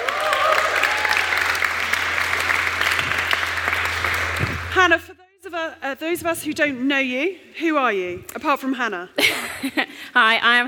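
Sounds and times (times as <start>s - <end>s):
audience round of applause: 0.0s - 4.8s
speech: 4.8s - 5.1s, 5.9s - 10.6s.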